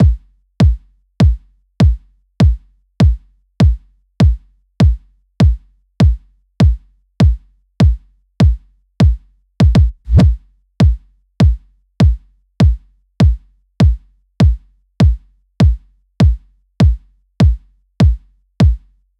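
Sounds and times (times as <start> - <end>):
kick drum loop at 100 bpm: 0.0 - 18.8.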